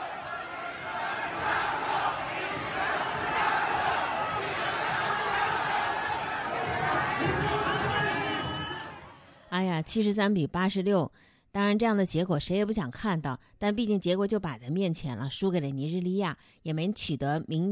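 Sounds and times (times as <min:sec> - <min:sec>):
arena crowd booing: 0:00.0 - 0:09.1
shouts: 0:00.0 - 0:09.1
speech: 0:09.8 - 0:17.6.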